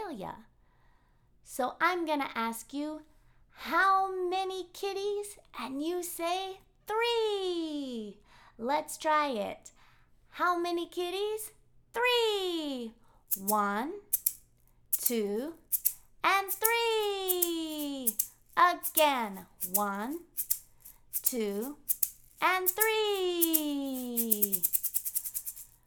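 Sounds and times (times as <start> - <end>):
speech: 0.1 - 0.5, 1.4 - 14.1, 15.0 - 20.5, 21.3 - 24.7
maracas shaking: 13.3 - 25.8
person counting aloud in a sing-song way: 15.0 - 20.6, 21.2 - 25.2.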